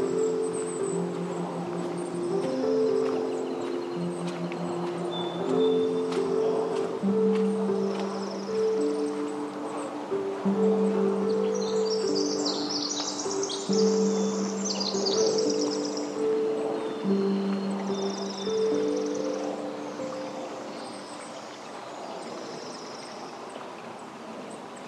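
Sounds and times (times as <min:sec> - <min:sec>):
bird chirps: 0:00.0 - 0:24.8
steady rushing like a stream in Forest Park, Portland, Oregon: 0:00.0 - 0:24.8.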